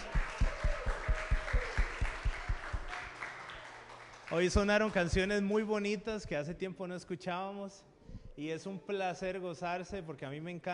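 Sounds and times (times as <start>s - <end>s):
crowd clapping rhythmically: 0.0s - 5.5s
speech: 4.3s - 10.7s.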